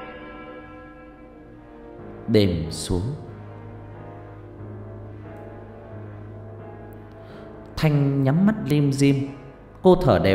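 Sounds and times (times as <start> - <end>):
antique western clock chiming: 0.0 - 1.6
speech: 2.3 - 3.2, 7.8 - 10.3.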